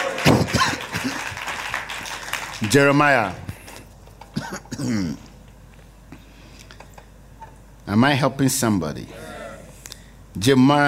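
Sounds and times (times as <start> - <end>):
crowd clapping and shouting: 0.0 - 3.4
speech: 2.6 - 3.4, 4.8 - 5.2, 7.9 - 9.3, 10.4 - 10.8.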